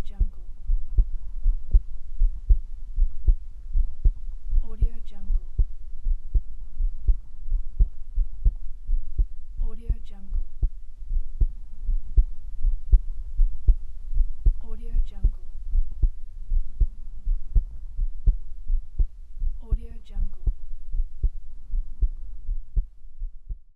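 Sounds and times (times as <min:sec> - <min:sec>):
real heartbeat: 0:00.0 - 0:23.6.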